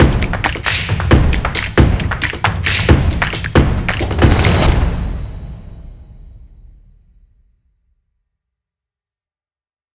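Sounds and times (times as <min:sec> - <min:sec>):
percussion: 0:00.0 - 0:07.5.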